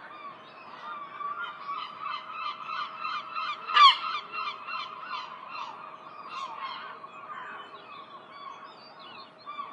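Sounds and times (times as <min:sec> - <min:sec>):
herring gull calling: 0:00.7 - 0:07.8.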